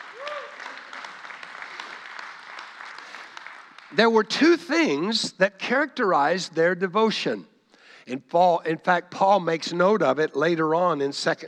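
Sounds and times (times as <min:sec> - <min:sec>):
person whooping: 0:00.0 - 0:00.8
audience applause: 0:00.0 - 0:04.0
speech: 0:03.9 - 0:11.4.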